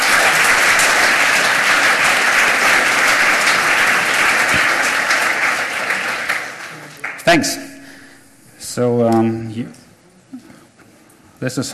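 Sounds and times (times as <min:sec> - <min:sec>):
audience applause at a hacker conference talk: 0:00.0 - 0:08.2
speech: 0:07.3 - 0:07.7, 0:08.8 - 0:10.5, 0:11.4 - 0:11.7.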